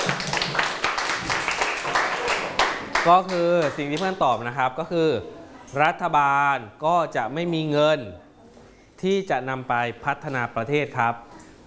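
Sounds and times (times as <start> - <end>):
school class clapping for a classmate: 0.0 - 4.2
speech: 3.0 - 8.2, 9.0 - 11.3.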